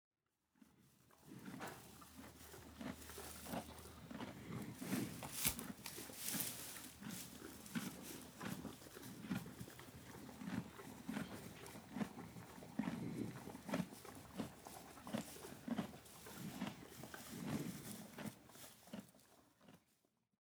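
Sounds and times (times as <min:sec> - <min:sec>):
horse feeding: 0:00.7 - 0:19.9.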